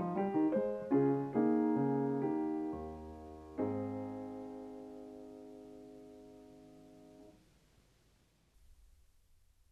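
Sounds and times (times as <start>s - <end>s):
prelude in A flat major: 0.0s - 7.3s.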